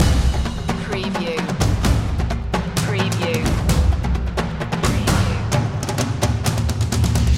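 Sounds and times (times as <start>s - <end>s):
storming percussion loop: 0.0s - 7.3s.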